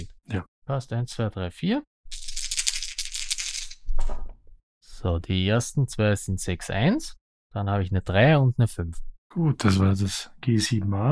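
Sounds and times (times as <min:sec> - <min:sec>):
speech: 0:00.3 - 0:01.9, 0:05.0 - 0:11.0
dice rattling in a cup: 0:02.1 - 0:03.8.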